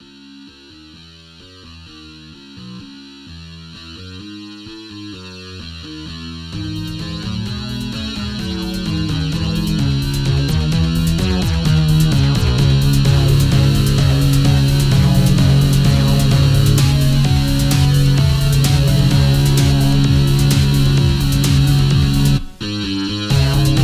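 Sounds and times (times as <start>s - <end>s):
synthesizer music: 6.6s - 23.8s.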